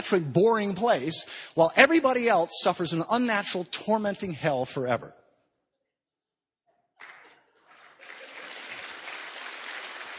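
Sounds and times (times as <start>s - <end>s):
speech: 0.0s - 5.2s
crowd applauding: 7.0s - 10.1s.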